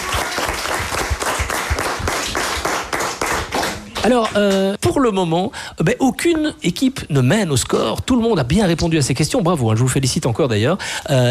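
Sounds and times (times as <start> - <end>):
school audience applauding: 0.0 - 4.7
speech: 4.0 - 11.2.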